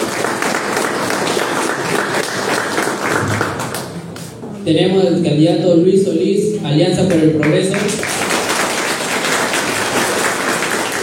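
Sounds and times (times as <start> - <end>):
audience applause: 0.0 - 4.0, 7.4 - 11.0
speech: 4.7 - 8.2.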